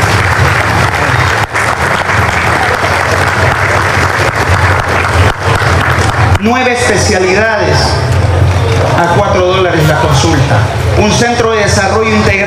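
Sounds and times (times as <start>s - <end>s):
audience applause: 0.0s - 7.0s
speech: 6.4s - 8.1s, 8.9s - 12.4s.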